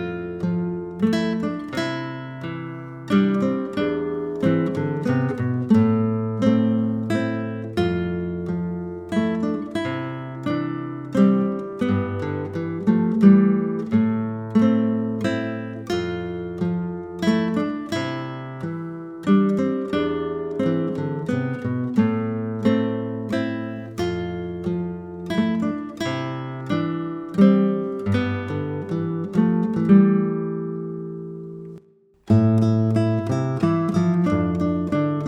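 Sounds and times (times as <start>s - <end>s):
guitar duo playing pop song: 0.0s - 35.2s.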